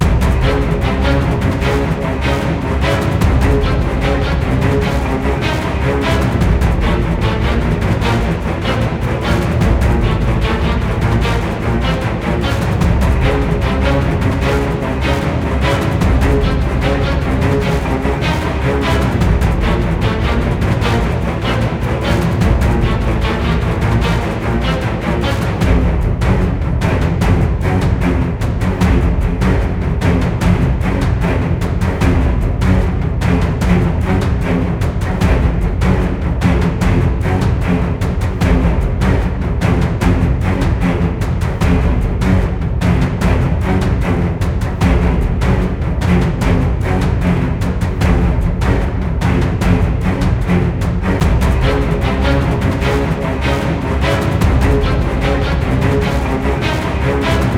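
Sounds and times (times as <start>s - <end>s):
minigame danger music: 0.0s - 57.5s.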